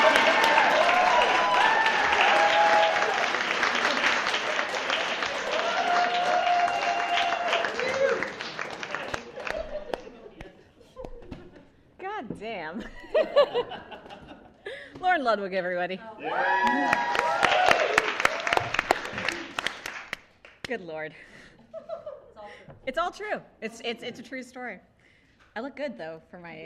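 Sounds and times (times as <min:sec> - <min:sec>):
audience chuckles and laughter: 0:00.0 - 0:00.7, 0:03.3 - 0:05.0, 0:08.7 - 0:11.6, 0:12.8 - 0:14.6
audience applause at a live show: 0:00.0 - 0:10.5, 0:16.4 - 0:20.8
speech: 0:15.3 - 0:17.2, 0:20.7 - 0:21.4, 0:22.9 - 0:24.9, 0:25.6 - 0:26.6.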